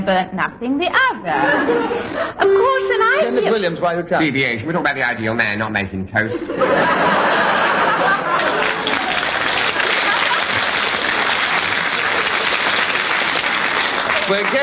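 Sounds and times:
speech: 0.0s - 9.1s, 14.3s - 14.6s
audience laughter: 1.3s - 2.4s, 6.2s - 12.5s
studio audience applauding: 7.1s - 14.6s.

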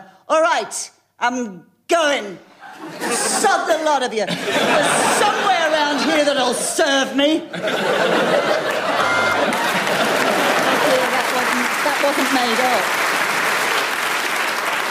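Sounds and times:
speech: 0.3s - 9.7s, 12.0s - 13.1s
laughter: 2.6s - 6.8s, 7.5s - 12.2s
audience applause: 8.0s - 14.9s.

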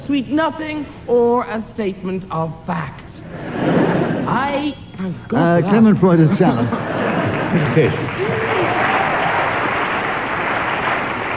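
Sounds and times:
speech: 0.1s - 3.0s, 4.3s - 8.4s
laughter: 3.3s - 4.3s, 5.7s - 9.6s
studio audience applause: 6.8s - 11.3s.

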